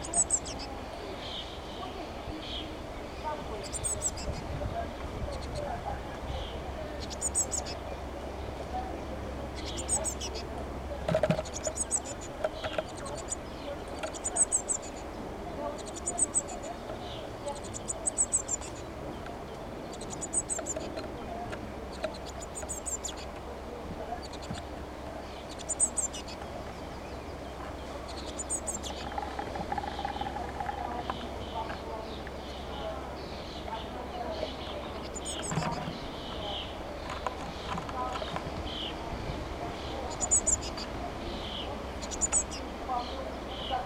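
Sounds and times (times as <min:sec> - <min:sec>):
Eurasian blue tit thin calls: 0:00.0 - 0:01.6, 0:03.6 - 0:04.4, 0:07.0 - 0:07.8, 0:09.6 - 0:10.5, 0:11.3 - 0:15.1, 0:15.7 - 0:18.9, 0:19.8 - 0:21.1, 0:21.9 - 0:23.4, 0:24.2 - 0:26.4, 0:28.0 - 0:33.8, 0:34.4 - 0:36.7, 0:40.1 - 0:42.6
faint steady background hum: 0:00.0 - 0:43.8.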